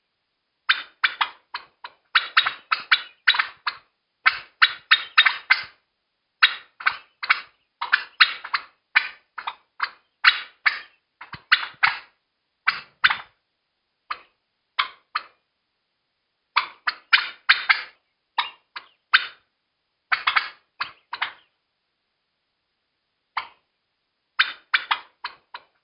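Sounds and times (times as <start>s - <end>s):
turkey panic calling: 0.7s - 5.8s, 6.4s - 13.4s, 14.1s - 15.4s, 16.6s - 19.5s, 20.1s - 21.5s, 23.4s - 23.7s, 24.4s - 25.8s.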